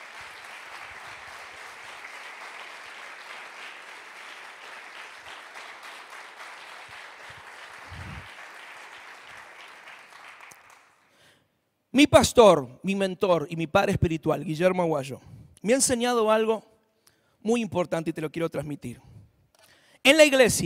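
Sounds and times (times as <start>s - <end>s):
audience applause: 0.0s - 11.1s
speech: 12.0s - 16.7s, 17.4s - 19.1s, 20.0s - 20.6s.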